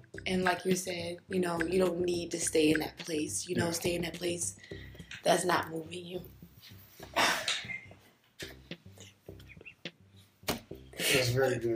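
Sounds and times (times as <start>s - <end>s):
speech: 0.3s - 7.3s, 11.1s - 11.7s
person coughing: 7.1s - 7.8s.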